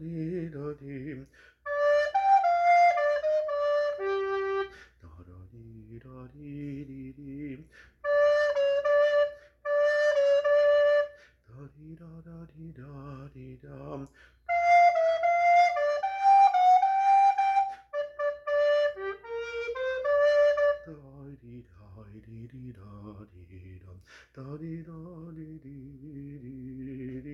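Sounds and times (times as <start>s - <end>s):
tenor recorder playing: 1.7s - 4.9s, 8.0s - 11.2s, 14.5s - 21.0s.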